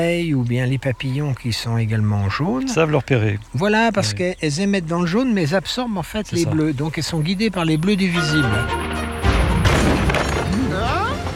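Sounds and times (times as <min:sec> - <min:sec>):
speech: 0:00.0 - 0:09.0
roaring thunder crash of a storm: 0:09.4 - 0:10.7.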